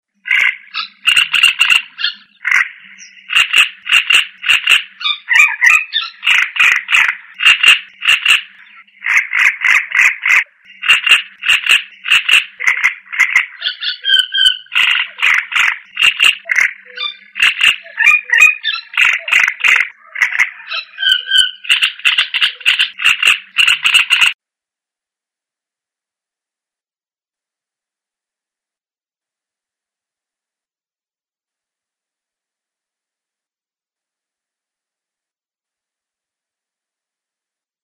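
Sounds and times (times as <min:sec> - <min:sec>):
bird song: 0:00.1 - 0:24.4.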